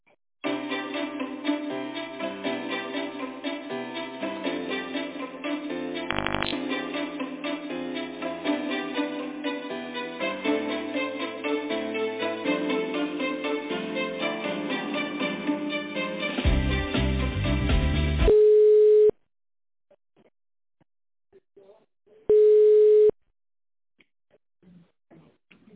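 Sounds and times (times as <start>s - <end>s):
music: 0.4s - 18.3s
telephone tone while a call is being connected: 6.1s - 6.6s, 18.3s - 19.1s, 22.3s - 23.1s.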